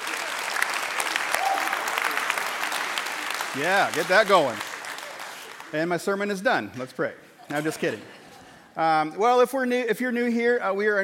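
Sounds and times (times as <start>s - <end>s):
audience applause: 0.0s - 5.9s
speech: 3.6s - 4.7s, 5.7s - 8.2s, 8.8s - 11.0s.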